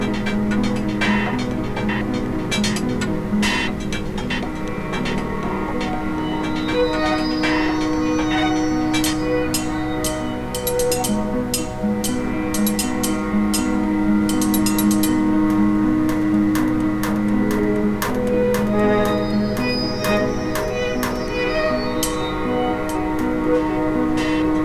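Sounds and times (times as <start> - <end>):
chakra ambient sound: 0.0 - 24.6.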